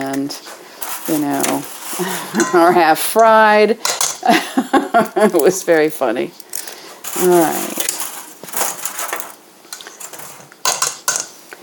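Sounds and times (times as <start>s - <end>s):
speech: 0.2s - 6.4s, 7.2s - 7.8s
eggshells dumped from a sink into the trash: 0.8s - 2.5s, 5.3s - 11.1s.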